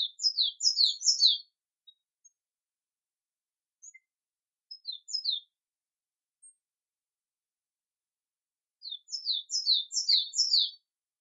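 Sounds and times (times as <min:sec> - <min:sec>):
native forest bird song of high sweeping downward chirps: 0:00.0 - 0:02.4, 0:03.8 - 0:04.1, 0:04.7 - 0:05.5, 0:08.8 - 0:10.8.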